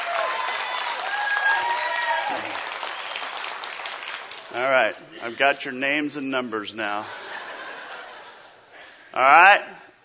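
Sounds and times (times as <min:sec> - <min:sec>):
crowd of Green Bay Packers fans cheering and clapping: 0:00.0 - 0:04.7
speech: 0:04.6 - 0:07.2, 0:09.2 - 0:09.9
laughter: 0:07.0 - 0:09.0.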